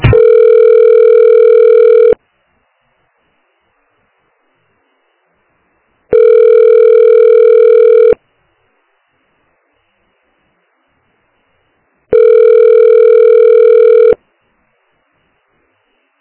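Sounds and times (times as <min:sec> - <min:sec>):
rapid telephone tones while another office extension is tried: 0:00.1 - 0:02.2, 0:06.1 - 0:08.2, 0:12.1 - 0:14.2.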